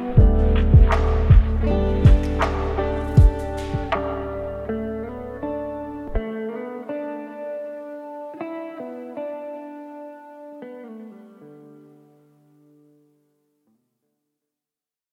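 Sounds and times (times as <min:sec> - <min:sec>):
lofi ambient music: 0:00.0 - 0:10.7.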